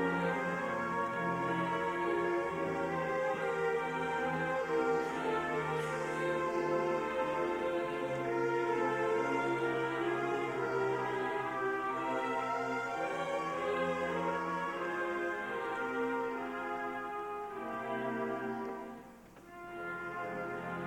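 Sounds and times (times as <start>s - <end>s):
orchestra playing: 0.0s - 20.8s
symphonic choir singing: 0.0s - 20.8s.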